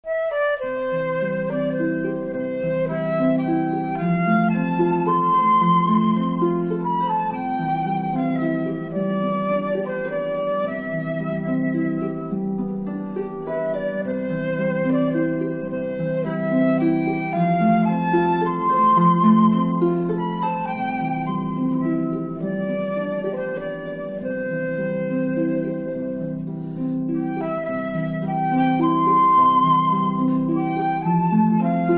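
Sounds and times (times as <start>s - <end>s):
harp duo: 0.0s - 31.9s.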